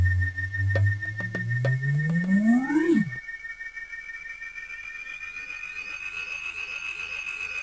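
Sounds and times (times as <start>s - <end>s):
8bit chiptune intro music: 0.2s - 3.2s.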